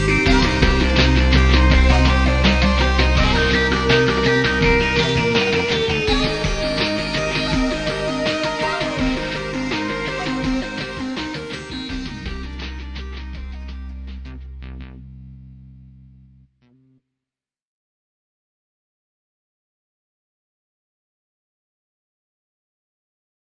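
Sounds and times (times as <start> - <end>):
drum: 0.1 - 15.0.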